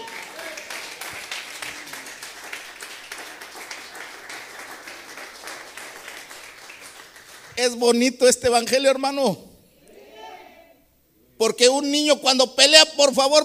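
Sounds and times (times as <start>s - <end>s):
audience clapping: 0.0s - 7.9s
speech: 7.6s - 9.5s, 11.4s - 13.4s.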